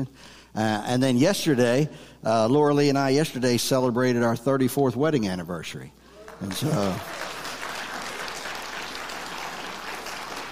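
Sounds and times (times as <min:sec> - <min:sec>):
speech: 0:00.0 - 0:07.3
listeners clapping during a pastor's message: 0:06.1 - 0:10.5.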